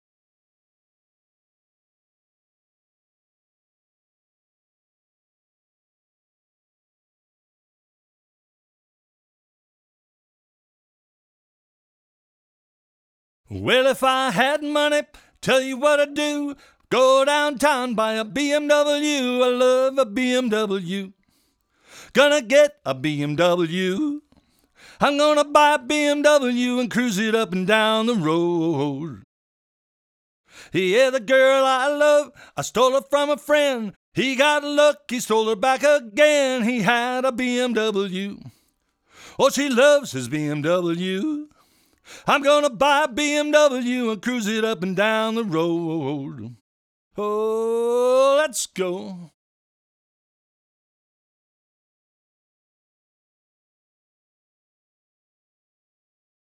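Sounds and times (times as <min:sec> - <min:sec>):
vocals: 0:13.5 - 0:29.3, 0:30.5 - 0:46.6, 0:47.2 - 0:49.4.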